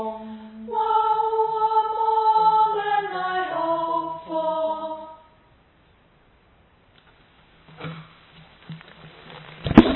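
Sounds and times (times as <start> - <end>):
soprano voice: 0.0 - 5.3.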